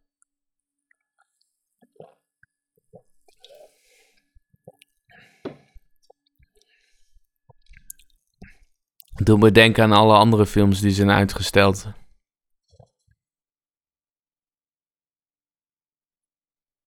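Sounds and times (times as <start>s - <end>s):
person sipping a drink: 3.0s - 3.8s
speech: 9.3s - 12.0s.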